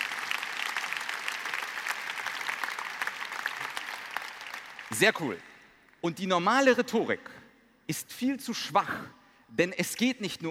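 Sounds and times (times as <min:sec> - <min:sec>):
audience applause: 0:00.0 - 0:05.0
speech: 0:04.9 - 0:10.4.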